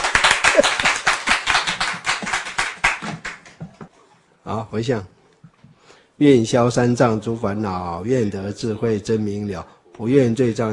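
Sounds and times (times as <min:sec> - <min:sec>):
audience clapping hands: 0:00.0 - 0:03.8
speech: 0:04.5 - 0:05.2, 0:06.2 - 0:10.7.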